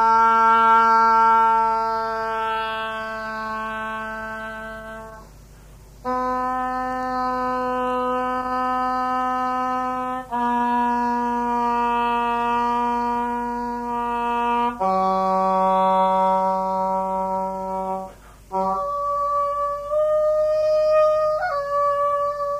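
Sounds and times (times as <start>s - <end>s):
oboe: 0.0s - 22.5s.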